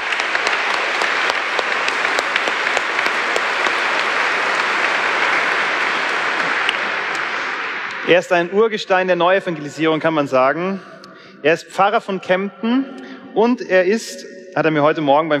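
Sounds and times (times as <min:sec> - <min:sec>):
audience applause: 0:00.0 - 0:08.4
speech: 0:08.1 - 0:15.3.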